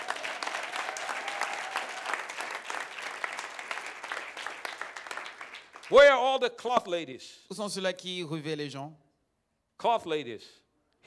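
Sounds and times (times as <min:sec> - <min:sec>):
audience clapping: 0:00.0 - 0:06.2
speech: 0:05.9 - 0:09.0, 0:09.8 - 0:11.0.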